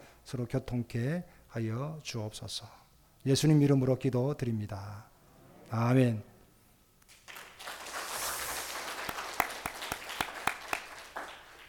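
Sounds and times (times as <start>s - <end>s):
speech: 0.3s - 5.1s, 5.7s - 6.3s
audience applauding: 7.1s - 11.6s.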